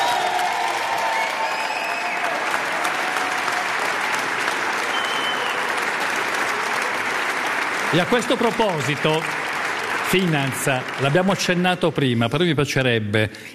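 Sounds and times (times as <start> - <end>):
sustained audience applause: 0.0 - 12.2
whistles in the crowd: 1.1 - 2.3, 4.9 - 5.7
speech: 7.9 - 9.4, 10.1 - 13.5.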